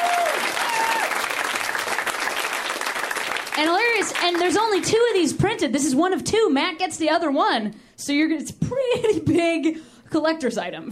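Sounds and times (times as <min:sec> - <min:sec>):
whistle or cheer: 0:00.0 - 0:01.2
audience applause: 0:00.0 - 0:04.8
speech: 0:03.6 - 0:10.9.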